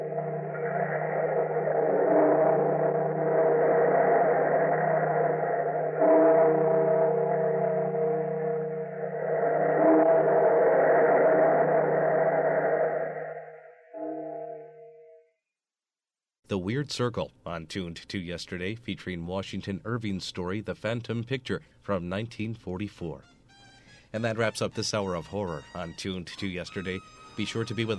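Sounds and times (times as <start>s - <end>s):
bells tolling: 0.0s - 12.0s
speech: 16.7s - 23.3s, 24.1s - 27.9s.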